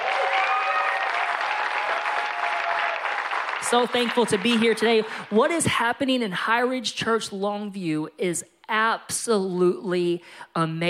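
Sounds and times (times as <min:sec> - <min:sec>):
audience applauding: 0:00.0 - 0:05.4
speech: 0:03.6 - 0:10.8.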